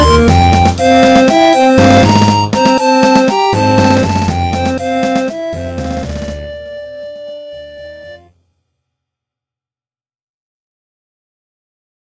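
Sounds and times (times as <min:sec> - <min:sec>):
victory fanfare: 0:00.0 - 0:08.3.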